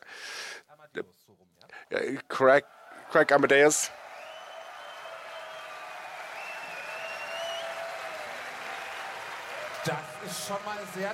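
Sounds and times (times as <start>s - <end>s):
speech: 1.0s - 4.0s, 9.8s - 11.1s
audience applause: 2.8s - 11.1s.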